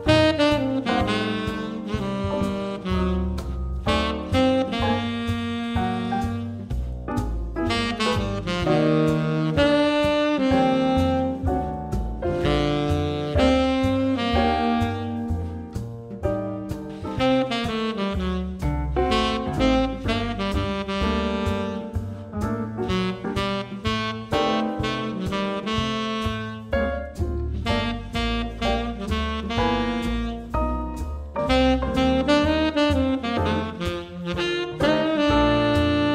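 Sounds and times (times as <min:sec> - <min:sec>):
tenor saxophone playing: 0:00.0 - 0:06.9, 0:07.6 - 0:15.8, 0:17.0 - 0:36.1.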